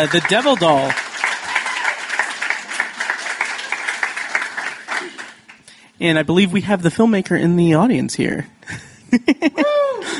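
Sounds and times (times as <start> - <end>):
speech: 0.0 - 1.0, 6.0 - 10.1
crowd applause: 0.0 - 5.6
faint cheers: 1.4 - 2.2.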